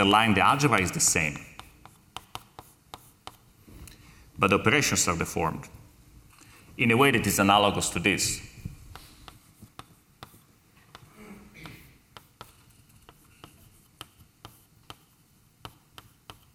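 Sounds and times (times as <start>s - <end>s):
speech: 0.0s - 1.5s, 4.4s - 5.8s, 6.8s - 8.5s
writing a formula on a board during a mathematics lecture: 1.6s - 3.5s, 8.9s - 16.5s.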